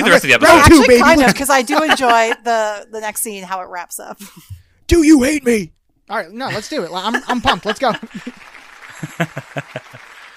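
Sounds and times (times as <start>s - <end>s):
laughter: 0.0s - 2.5s, 6.5s - 10.1s
speech: 0.1s - 8.4s, 9.0s - 10.1s
audience clapping: 7.4s - 10.3s.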